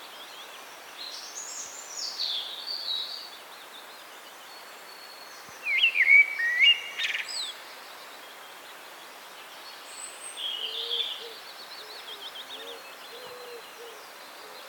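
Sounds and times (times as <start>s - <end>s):
common blackbird Turdus merula singing fluty whistled phrases: 0.0s - 14.6s.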